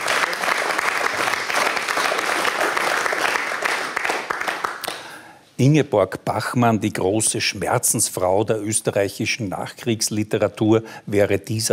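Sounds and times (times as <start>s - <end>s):
audience applause: 0.0s - 5.1s
speech: 5.6s - 11.7s.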